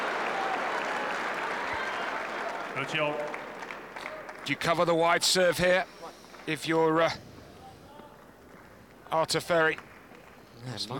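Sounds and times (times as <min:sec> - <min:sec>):
centre court tennis crowd reacting: 0:00.0 - 0:04.4
speech: 0:02.8 - 0:03.5, 0:04.5 - 0:07.3, 0:09.1 - 0:09.9, 0:10.6 - 0:10.9.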